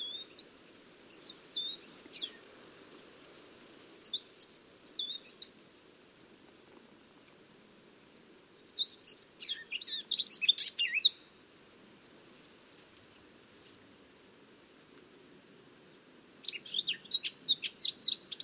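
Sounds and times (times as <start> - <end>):
Eurasian blackcap warbling song: 0.0 - 2.4, 4.0 - 5.5, 8.6 - 11.3, 15.1 - 18.4.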